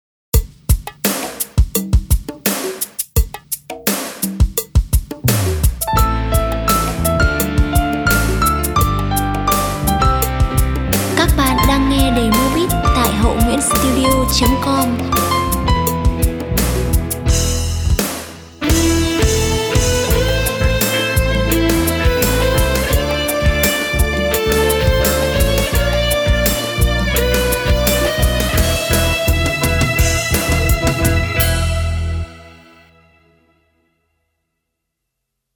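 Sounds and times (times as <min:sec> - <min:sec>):
music beat: 0:00.4 - 0:32.2.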